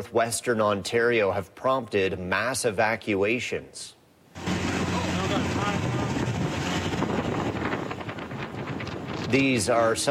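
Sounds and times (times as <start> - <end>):
speech: 0.0 - 4.6, 9.3 - 10.0
motorboat engine on water: 4.4 - 8.9.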